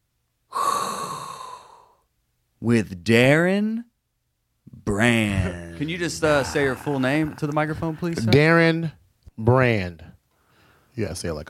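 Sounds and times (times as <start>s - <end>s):
deep inhale of breath: 0.5s - 2.0s, 10.4s - 11.0s
speech: 2.6s - 3.9s, 4.9s - 10.1s, 11.0s - 11.4s
laughter: 5.3s - 8.8s.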